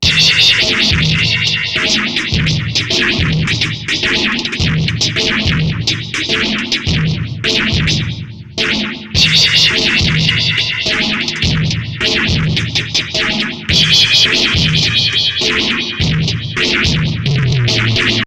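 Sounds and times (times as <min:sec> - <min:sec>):
distorted beat: 0:00.0 - 0:18.2.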